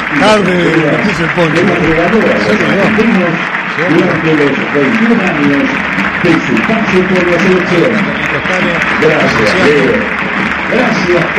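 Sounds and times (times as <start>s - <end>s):
stadium crowd applauding: 0.0s - 11.3s
speech: 0.1s - 11.3s.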